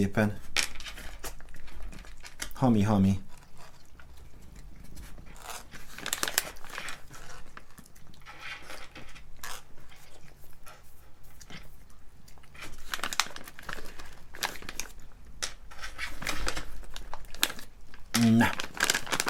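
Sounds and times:
speech: 0.0s - 0.4s, 2.6s - 3.3s
bag of cat treats crinkling: 0.4s - 10.4s, 12.4s - 19.2s.

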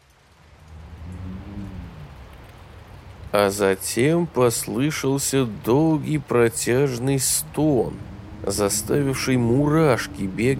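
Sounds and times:
rain drumming on a roof: 0.0s - 10.5s
deep low rumble: 0.5s - 2.6s, 7.0s - 10.5s
speech: 3.3s - 10.5s.

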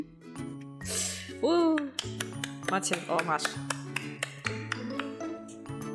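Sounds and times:
speech: 1.4s - 3.8s
slow hand claps: 1.7s - 5.4s.

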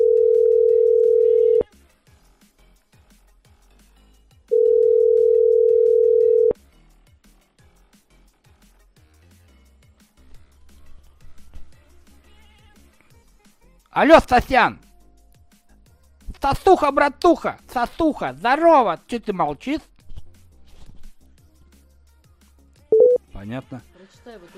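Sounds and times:
telephone ringback tone: 0.0s - 1.6s, 4.5s - 6.6s, 22.9s - 23.2s
speech: 14.0s - 14.8s, 16.4s - 19.9s, 23.4s - 24.5s.

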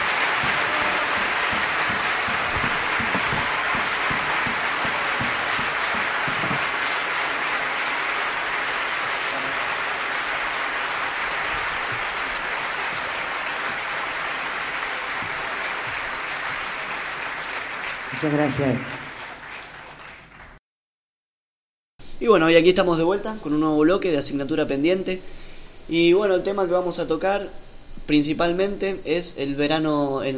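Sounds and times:
audience applauding the guitarists: 0.0s - 20.6s
speech: 18.2s - 19.0s, 22.3s - 30.3s.

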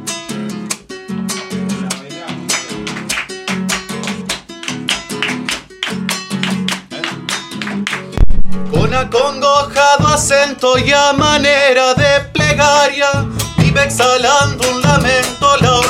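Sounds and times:
flamenco palmas rhythmic hand clapping: 0.7s - 11.4s, 13.6s - 15.8s
speech: 9.0s - 15.8s.

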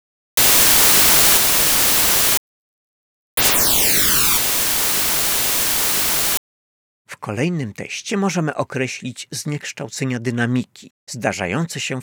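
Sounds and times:
linearized test noise signal: 0.4s - 2.4s, 3.4s - 6.4s
speech: 7.2s - 12.0s.

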